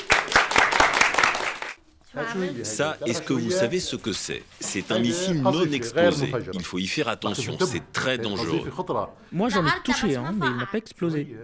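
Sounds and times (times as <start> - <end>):
audience applause: 0.0 - 1.8
speech: 2.2 - 11.4.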